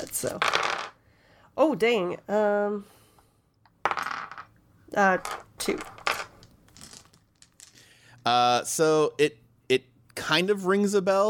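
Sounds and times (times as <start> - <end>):
speech: 0.0 - 0.7, 1.6 - 3.0, 4.9 - 6.0, 8.2 - 11.2
dice clattering across a hard surface: 0.0 - 1.0, 3.8 - 7.9.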